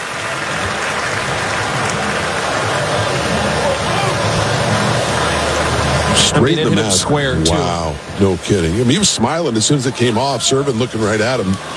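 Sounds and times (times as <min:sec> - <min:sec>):
stadium fans applauding and cheering: 0:00.0 - 0:11.7
speech: 0:06.4 - 0:11.7.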